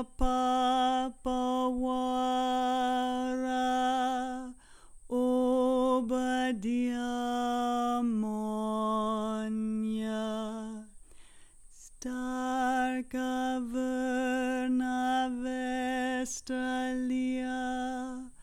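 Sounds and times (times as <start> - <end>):
folk choir singing a boat song low harmony on doh: 0.0 - 10.9, 12.0 - 18.4.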